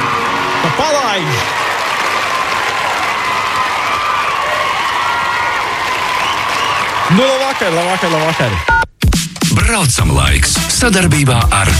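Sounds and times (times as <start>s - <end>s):
Latvian travel show audience applause: 0.0s - 8.8s
Latvian travel show audience cheering: 0.0s - 8.9s
speech: 0.6s - 1.6s, 7.1s - 8.7s, 9.6s - 11.7s.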